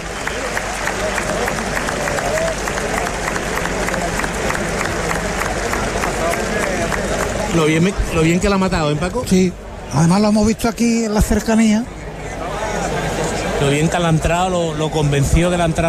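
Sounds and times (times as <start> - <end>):
large crowd applauding an ovation at bullring: 0.0 - 8.6
murmur of voices: 0.0 - 15.8
speech: 7.6 - 12.0, 13.6 - 15.8.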